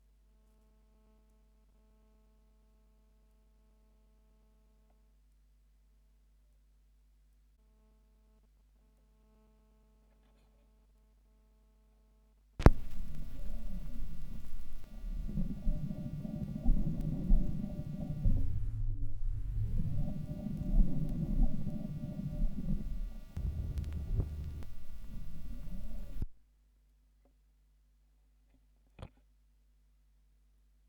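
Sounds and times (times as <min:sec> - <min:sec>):
vinyl record noise: 0:12.6 - 0:26.3.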